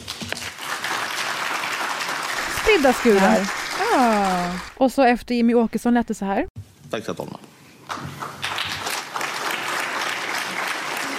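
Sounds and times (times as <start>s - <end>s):
audience applause: 0.0s - 4.8s, 7.9s - 11.1s
speech: 2.7s - 7.5s.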